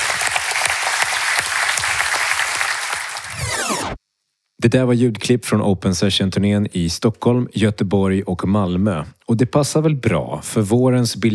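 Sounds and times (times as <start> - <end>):
crowd applauding: 0.0 - 4.0
speech: 4.6 - 11.3.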